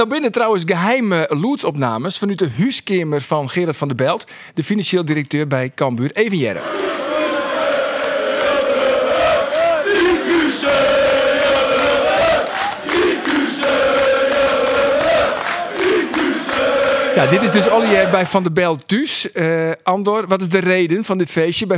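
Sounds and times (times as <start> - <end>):
speech: 0.0 - 7.1, 17.2 - 21.7
people cheering and chanting at a party after match: 6.6 - 18.4.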